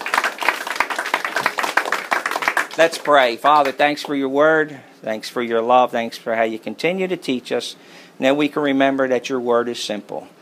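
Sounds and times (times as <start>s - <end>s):
crowd clapping: 0.0s - 4.2s
speech: 2.8s - 10.3s.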